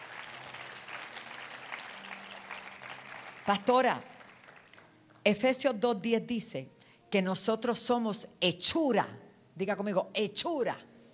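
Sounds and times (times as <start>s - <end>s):
audience applause: 0.0s - 4.9s
speech: 3.5s - 4.1s, 5.2s - 10.9s.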